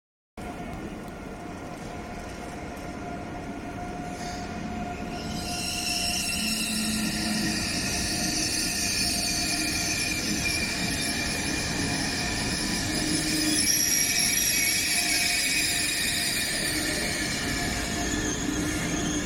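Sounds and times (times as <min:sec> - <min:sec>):
ICE train wheels rumbling into Frankfurt: 0:00.4 - 0:19.2
ICE train brakes and wheels screeching: 0:04.0 - 0:19.2
ICE train metallic whine: 0:04.2 - 0:19.2.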